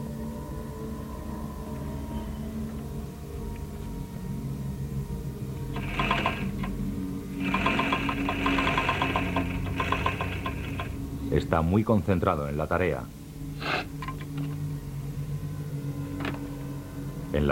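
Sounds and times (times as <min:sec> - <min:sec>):
low hum: 0:00.0 - 0:17.5
sewing machine sewing human skin: 0:05.8 - 0:06.6, 0:07.4 - 0:11.0
speech: 0:11.5 - 0:13.2, 0:17.4 - 0:17.5.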